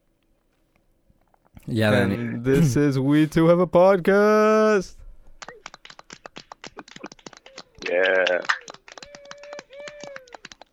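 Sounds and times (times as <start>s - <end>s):
speech: 1.6s - 5.0s
clapping sound bite: 5.4s - 10.7s.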